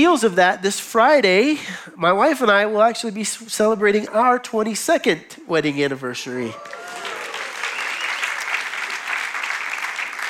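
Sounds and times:
speech: 0.0s - 6.8s
crowd clapping: 6.6s - 10.2s.

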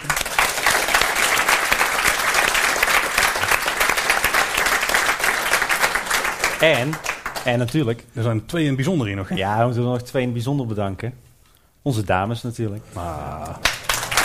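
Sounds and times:
audience applause: 0.0s - 7.4s, 13.6s - 14.2s
speech: 6.6s - 11.2s, 11.8s - 13.7s.

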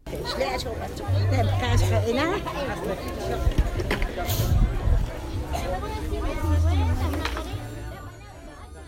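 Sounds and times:
busy Sunday market crowd chattering: 0.0s - 8.8s.

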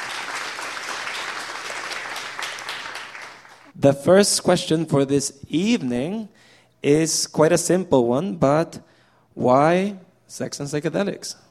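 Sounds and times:
audience applause for the speakers: 0.0s - 3.7s
speech: 3.8s - 11.5s.

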